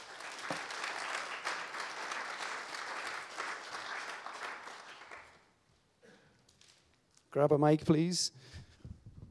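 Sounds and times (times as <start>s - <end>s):
audience round of applause: 0.0s - 5.5s
speech: 7.3s - 8.6s.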